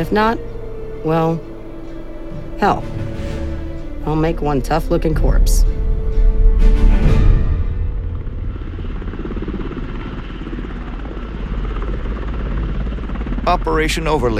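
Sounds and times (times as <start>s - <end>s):
speech: 0.0s - 1.5s, 2.6s - 3.1s, 4.0s - 5.8s, 13.5s - 14.3s
Chinook helicopter in flight descending toward Mihail Kogalniceanu Airport in Romania: 0.0s - 14.3s.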